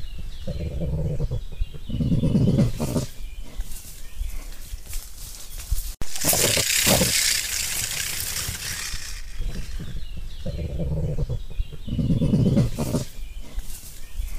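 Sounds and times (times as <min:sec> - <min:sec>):
crested porcupine grunting: 0:00.3 - 0:04.6, 0:06.1 - 0:07.9, 0:09.3 - 0:14.3.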